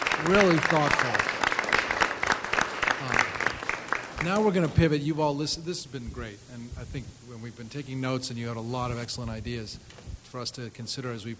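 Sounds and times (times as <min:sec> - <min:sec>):
audience applause at a panel discussion event: 0:00.0 - 0:04.8
speech: 0:00.2 - 0:01.4, 0:04.2 - 0:11.3.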